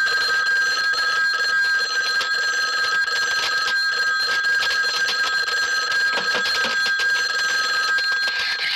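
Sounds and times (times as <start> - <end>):
telephone ringing: 0.0 - 8.6.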